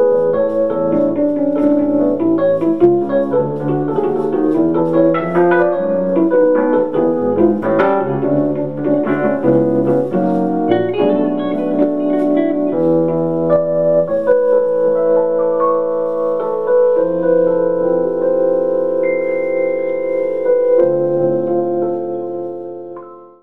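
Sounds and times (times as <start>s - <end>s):
solo piano: 0.0s - 23.4s.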